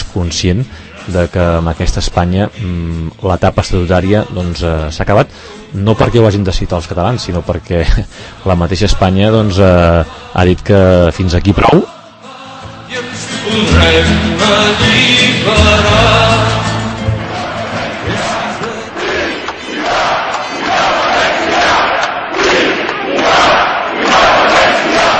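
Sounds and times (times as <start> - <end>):
speech: 0.2 - 12.0, 13.5 - 16.2
crowd shouting pro-independence slogans: 13.8 - 25.1.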